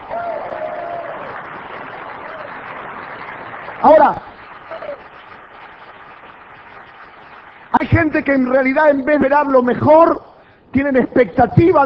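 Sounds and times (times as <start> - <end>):
audience applause: 0.0 - 9.3
speech: 3.8 - 4.3, 7.8 - 11.8.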